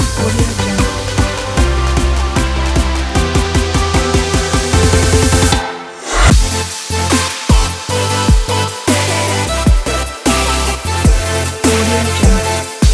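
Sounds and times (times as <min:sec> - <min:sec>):
joyful future bass music: 0:00.0 - 0:12.9.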